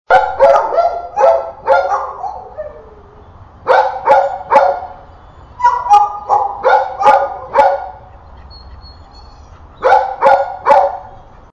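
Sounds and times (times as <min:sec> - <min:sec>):
barking close by: 0:00.1 - 0:02.9, 0:03.7 - 0:04.9, 0:05.6 - 0:08.0, 0:09.8 - 0:11.2.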